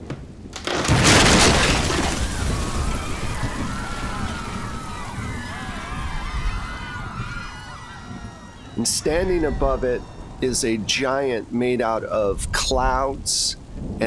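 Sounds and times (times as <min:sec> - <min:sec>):
roof tearing away: 0:00.0 - 0:08.8
roar of rushing debris and wind: 0:00.0 - 0:14.0
speech: 0:08.8 - 0:14.0.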